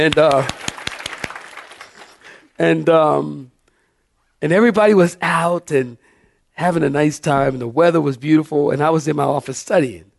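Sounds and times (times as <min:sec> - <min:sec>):
speech: 0:00.0 - 0:00.6, 0:02.6 - 0:03.5, 0:04.4 - 0:06.0, 0:06.6 - 0:10.1
audience clapping for newlyweds: 0:00.0 - 0:02.6.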